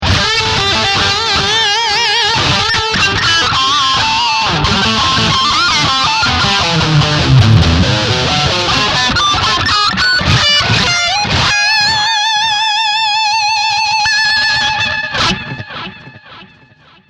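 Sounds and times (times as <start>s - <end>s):
electric guitar lead on bridge humbucker pickup: 0.0s - 17.0s.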